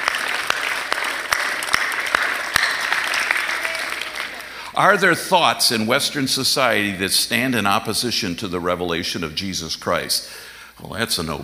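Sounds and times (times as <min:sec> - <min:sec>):
audience applause: 0:00.0 - 0:05.1
speech: 0:04.8 - 0:11.4.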